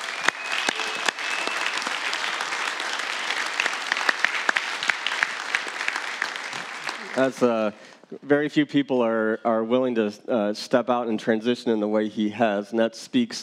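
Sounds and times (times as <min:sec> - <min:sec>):
room full of people applauding: 0:00.0 - 0:07.7
speech: 0:07.2 - 0:13.4.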